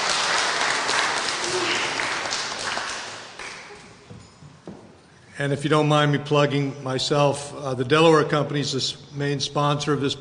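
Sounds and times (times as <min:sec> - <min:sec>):
audience applause: 0:00.0 - 0:04.0
speech: 0:05.4 - 0:10.1.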